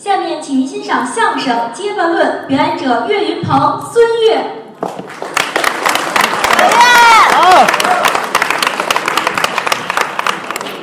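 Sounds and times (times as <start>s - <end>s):
speech: 0.0s - 5.3s
large audience applause: 5.0s - 10.8s
person cheering: 6.6s - 8.2s.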